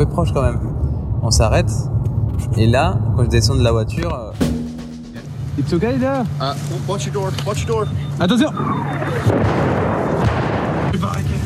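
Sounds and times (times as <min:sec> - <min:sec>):
speech: 0:00.0 - 0:04.5, 0:05.6 - 0:10.4, 0:11.0 - 0:11.3
artillery shelling explosions: 0:08.6 - 0:11.4.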